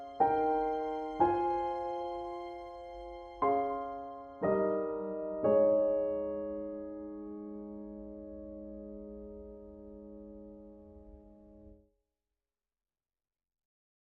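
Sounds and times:
strings: 0.0s - 6.8s
piano: 0.0s - 11.9s.

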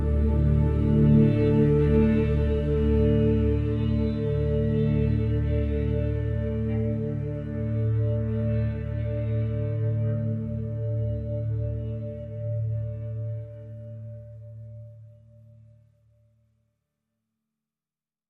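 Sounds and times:
synth pads: 0.0s - 15.4s.

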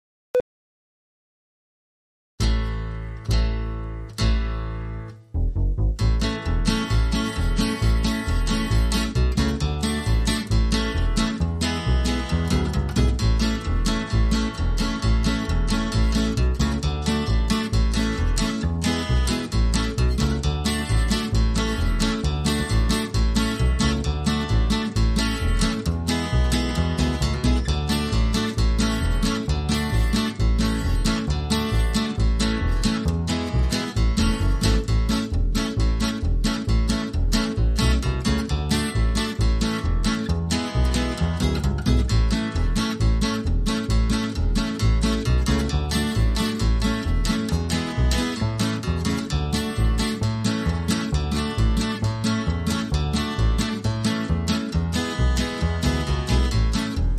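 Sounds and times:
banjo tune: 2.4s - 57.1s.

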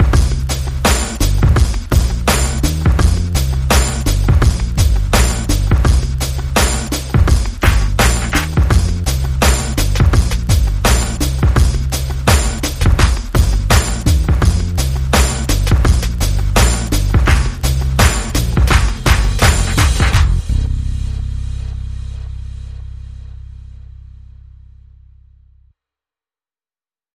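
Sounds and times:
percussion: 0.0s - 22.3s
sound effects: 18.7s - 23.4s.

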